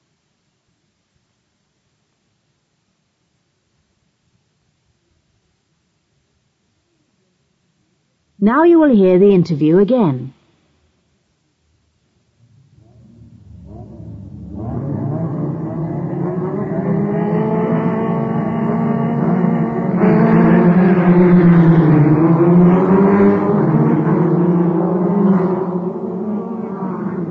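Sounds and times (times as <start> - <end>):
speech: 8.4 - 10.4
Formula One cars roaring around racetrack: 13.7 - 27.2.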